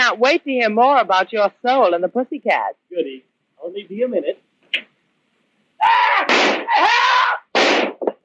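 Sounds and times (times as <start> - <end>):
speech: 0.1 - 4.9, 5.8 - 7.0
gunshots: 6.2 - 6.8, 7.5 - 8.1.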